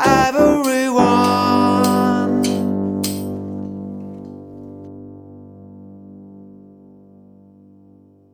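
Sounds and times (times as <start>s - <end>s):
tenor singing: 0.0s - 3.1s.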